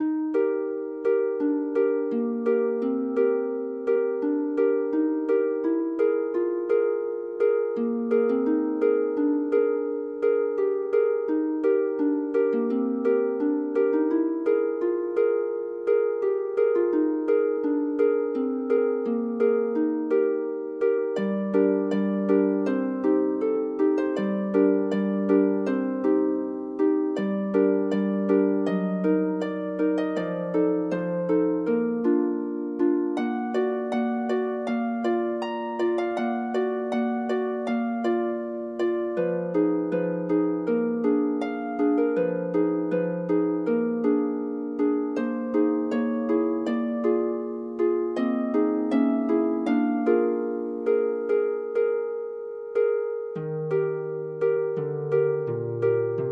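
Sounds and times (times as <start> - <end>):
harp: 0.0 - 56.2.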